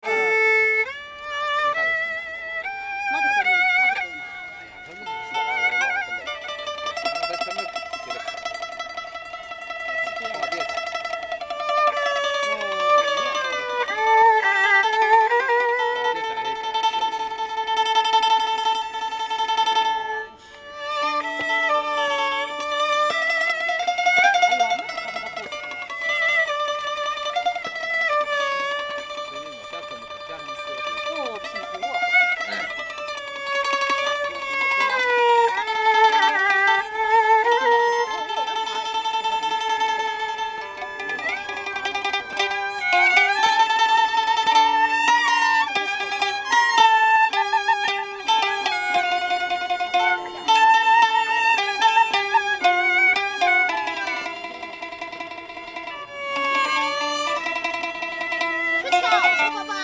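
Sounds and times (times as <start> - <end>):
instrumental music: 0.0 - 59.8.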